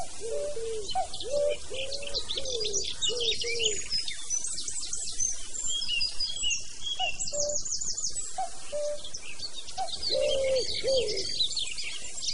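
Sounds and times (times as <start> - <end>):
cuckoo in a forest: 0.0 - 3.9, 7.0 - 9.2, 9.8 - 12.1.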